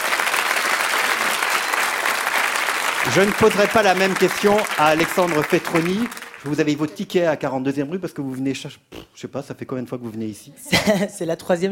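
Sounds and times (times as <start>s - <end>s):
audience applause: 0.0s - 7.0s
speech: 3.0s - 11.7s.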